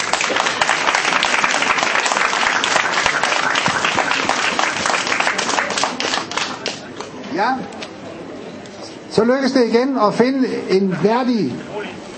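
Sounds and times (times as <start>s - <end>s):
large audience applause: 0.0s - 7.1s
speech: 7.4s - 7.8s, 9.2s - 11.7s.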